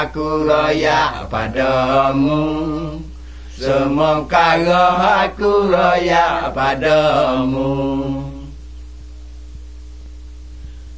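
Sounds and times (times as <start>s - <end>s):
Malay Pattani songs: 0.0s - 8.7s.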